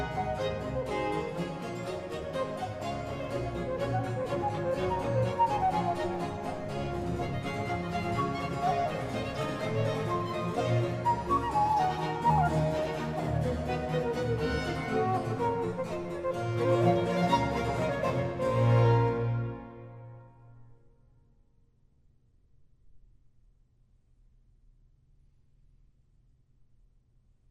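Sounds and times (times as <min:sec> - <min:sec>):
orchestral suite movement in B minor: 0:00.0 - 0:20.8.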